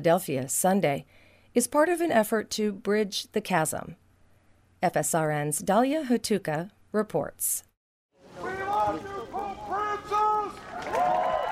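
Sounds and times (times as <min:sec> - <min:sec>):
speech: 0:00.0 - 0:04.0, 0:04.8 - 0:07.7
crowd applauding: 0:08.3 - 0:11.5.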